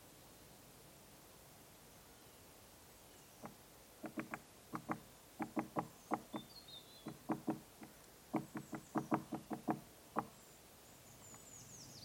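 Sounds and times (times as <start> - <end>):
great spotted woodpecker knocking on a tree trunk: 3.4 - 10.4.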